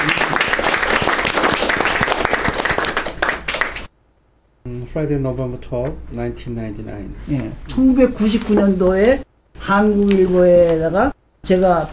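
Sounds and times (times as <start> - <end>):
audience applause: 0.0 - 3.9
speech: 5.0 - 11.9.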